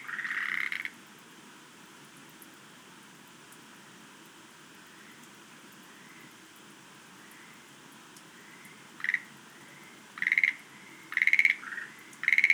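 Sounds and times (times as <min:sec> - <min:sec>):
Schlegel's green tree frogs rattling croaks: 0:00.0 - 0:01.0, 0:08.4 - 0:12.5.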